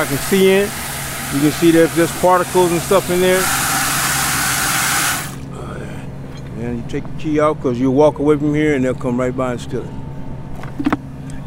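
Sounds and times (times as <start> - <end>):
speech: 0.0 - 3.6, 6.6 - 10.0
water pumped from a utility truck's tank into a clear bucket: 0.0 - 5.5.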